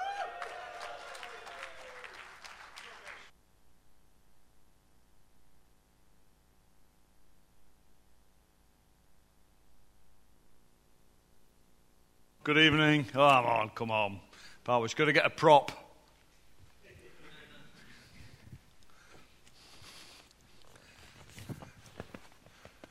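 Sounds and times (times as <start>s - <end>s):
crowd applauding: 0.0s - 3.3s
faint steady hiss: 3.5s - 22.8s
speech: 12.4s - 15.8s.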